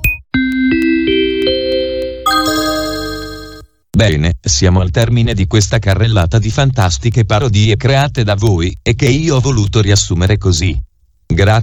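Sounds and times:
messaging app new message notification tone: 0.0s - 3.7s
speech: 4.0s - 11.6s.

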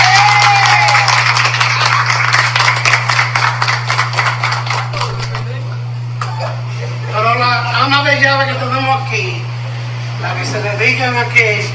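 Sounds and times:
whistle or cheer: 0.0s - 1.9s
crowd applauding: 0.0s - 6.4s
low constant hum: 0.0s - 11.7s
speech: 10.3s - 11.7s.

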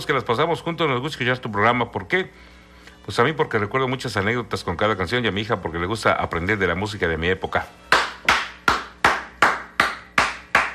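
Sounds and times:
speech: 0.0s - 7.9s
hand claps: 7.9s - 10.7s.

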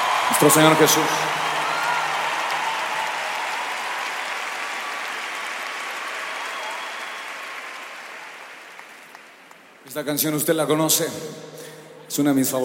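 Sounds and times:
audience applause: 0.0s - 9.8s
speech: 0.3s - 1.4s, 10.0s - 12.6s.

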